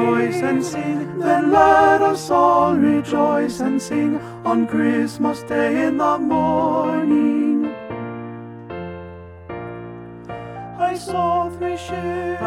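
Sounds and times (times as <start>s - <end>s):
tenor bass choir singing a holiday carol: 0.0s - 7.8s, 10.8s - 12.4s.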